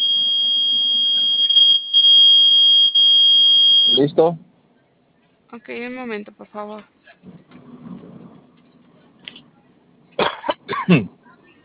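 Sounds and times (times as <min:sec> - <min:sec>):
panic button alarm signal tone: 0:00.0 - 0:04.0
speech: 0:04.0 - 0:04.5, 0:05.5 - 0:07.5, 0:10.9 - 0:11.2.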